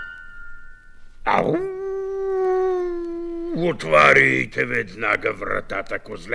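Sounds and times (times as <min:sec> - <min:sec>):
wolf roaring and howling: 0:01.3 - 0:03.6
speech: 0:03.7 - 0:06.3.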